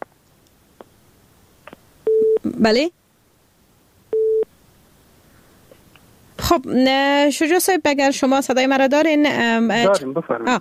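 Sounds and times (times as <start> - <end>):
telephone busy signal from a call that failed to connect: 2.1 - 2.4, 4.1 - 4.4
speech: 2.6 - 3.0, 6.5 - 10.5.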